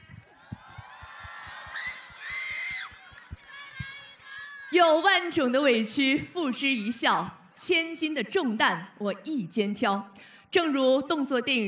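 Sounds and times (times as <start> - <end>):
large crowd applauding and cheering: 0.0 - 5.4
high excited shouts and screams: 0.4 - 4.8
speech: 4.7 - 11.6.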